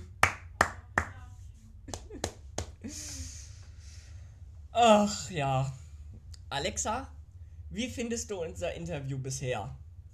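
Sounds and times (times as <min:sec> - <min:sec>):
audience clapping: 0:00.0 - 0:01.2, 0:01.9 - 0:02.8
speech: 0:04.8 - 0:05.8, 0:06.5 - 0:09.8.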